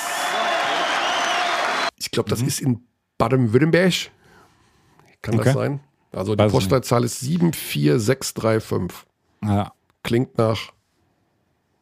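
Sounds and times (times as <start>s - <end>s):
crowd applause: 0.0s - 1.9s
speech: 2.1s - 4.2s, 5.2s - 10.8s.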